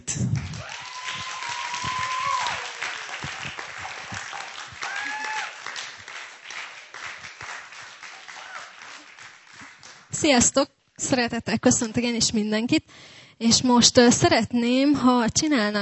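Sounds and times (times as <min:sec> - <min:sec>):
crowd applauding: 0:00.0 - 0:10.2
faint whistles and cheers: 0:00.5 - 0:06.0
speech: 0:10.2 - 0:15.8.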